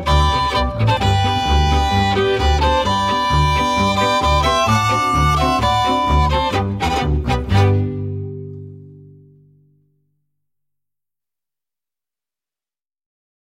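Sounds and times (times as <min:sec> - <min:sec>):
polka music: 0:00.0 - 0:09.7.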